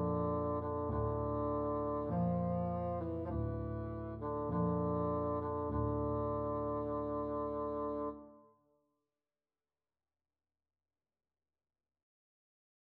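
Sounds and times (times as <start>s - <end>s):
bassoon melody: 0.0s - 8.5s.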